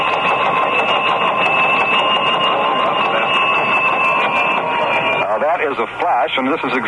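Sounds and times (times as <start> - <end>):
United Press teletype wire machine printing bells: 0.0 - 5.7
speech: 5.8 - 6.8.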